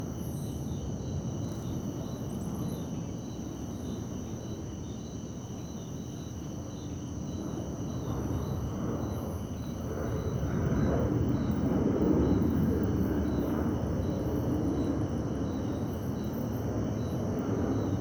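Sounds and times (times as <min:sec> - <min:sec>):
crickets trilling: 0:00.2 - 0:17.9.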